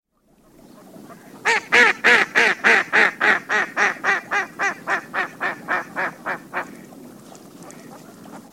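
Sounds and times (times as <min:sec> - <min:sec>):
mallard loud harsh quacking: 0:01.1 - 0:06.9.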